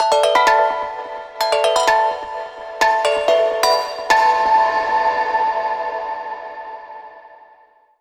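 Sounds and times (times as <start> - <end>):
instrument bell: 0.0 - 7.4.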